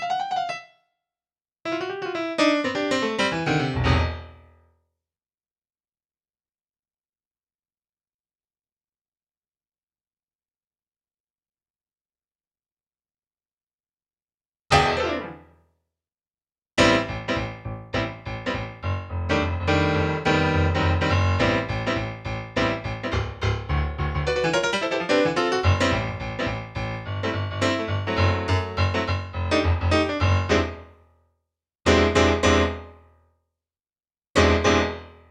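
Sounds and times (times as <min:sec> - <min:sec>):
keyboard playing: 0:01.7 - 0:04.4, 0:14.7 - 0:15.4, 0:16.8 - 0:30.9, 0:31.9 - 0:32.9, 0:34.4 - 0:35.1.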